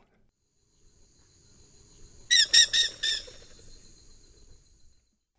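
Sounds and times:
Dusky-headed Parakeet calling in South American Eastern Lowlands: 2.3s - 3.4s.

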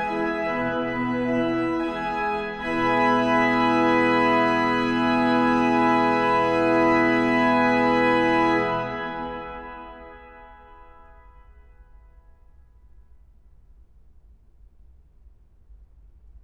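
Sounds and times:
organ requiem: 0.0s - 11.0s.

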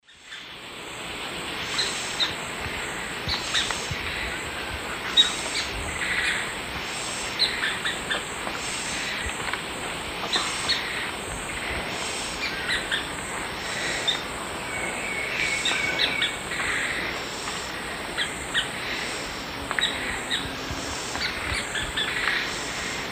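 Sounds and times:
Red-stained Woodpecker Veniliornis affinis group calls in S America Eastern Lowlands: 0.1s - 23.1s.

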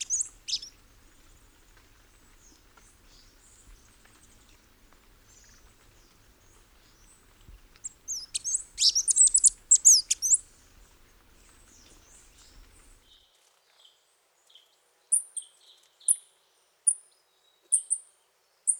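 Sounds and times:
birds of the Costa Rican cloud forest singing and calling: 0.0s - 13.0s.

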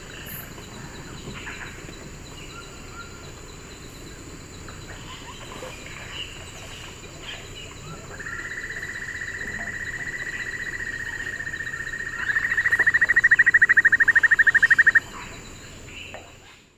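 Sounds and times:
Notharchus hyperrhynchus duet in South American Eastern Lowlands: 4.9s - 16.1s.

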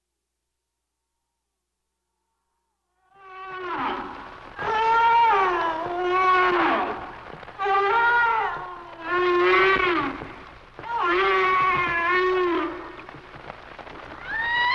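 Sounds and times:
humpback whale song: 3.1s - 13.2s.

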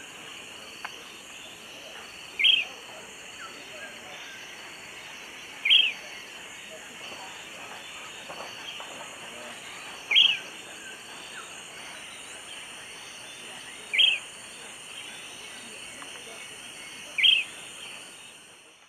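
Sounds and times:
Myiarchus ferox dawn song in the Eastern Lowlands of South America: 0.0s - 18.5s.

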